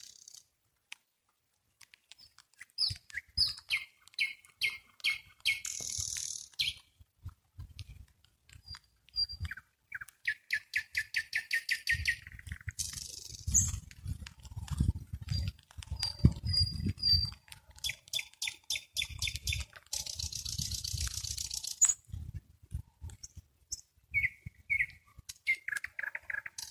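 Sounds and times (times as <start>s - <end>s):
nightingale song: 2.1s - 7.0s, 8.5s - 13.8s, 15.3s - 22.1s, 23.1s - 26.6s.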